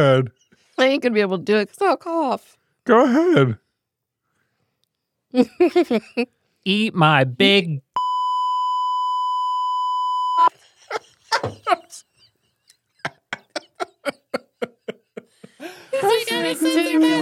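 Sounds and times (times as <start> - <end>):
speech: 0.0 - 3.6, 5.3 - 7.8, 16.4 - 17.2
sensor button beep: 8.0 - 10.5
laughter: 10.5 - 17.2.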